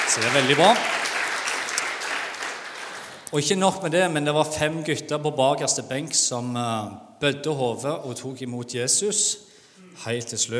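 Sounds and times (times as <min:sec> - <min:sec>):
applause: 0:00.0 - 0:03.3
speech: 0:00.1 - 0:01.0, 0:03.3 - 0:10.5.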